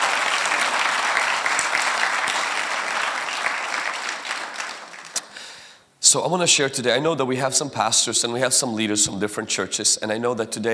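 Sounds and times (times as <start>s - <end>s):
audience clapping: 0.0s - 5.4s
speech: 6.1s - 10.7s.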